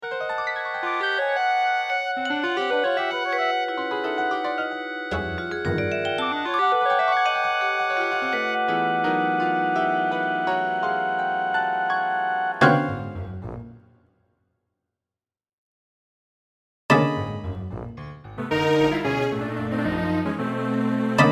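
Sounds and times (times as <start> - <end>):
dectet playing: 0.0 - 13.1, 18.4 - 21.2.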